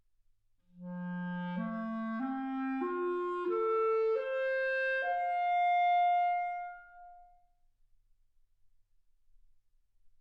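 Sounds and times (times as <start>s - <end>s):
clarinet: 0.7s - 7.4s.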